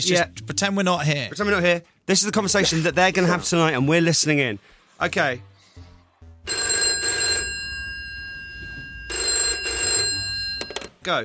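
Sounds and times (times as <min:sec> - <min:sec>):
speech: 0:00.0 - 0:05.9, 0:11.1 - 0:11.2
telephone bell ringing for an incoming call: 0:06.5 - 0:11.0.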